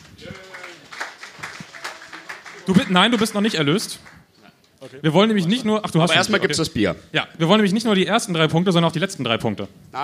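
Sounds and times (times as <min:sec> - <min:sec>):
applause: 0:00.0 - 0:04.3
speech: 0:02.7 - 0:04.2, 0:04.9 - 0:10.0.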